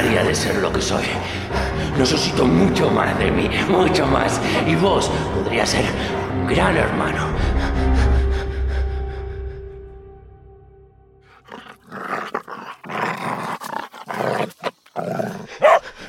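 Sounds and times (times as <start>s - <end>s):
speech: 0.0s - 8.0s
dog growling and snarling: 11.3s - 16.0s.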